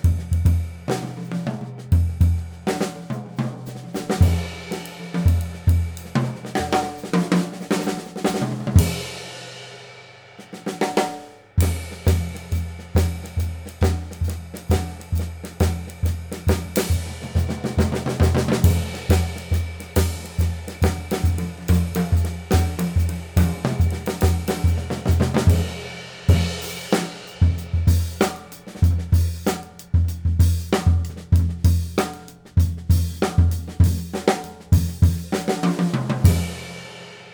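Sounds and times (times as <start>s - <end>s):
Gretsch Brooklyn drum kit: 0.0s - 37.3s.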